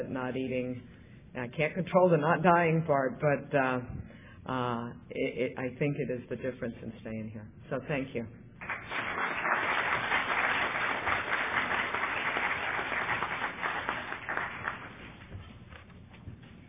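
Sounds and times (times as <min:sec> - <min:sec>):
speech: 0:00.0 - 0:08.4
audience applause: 0:08.6 - 0:15.4.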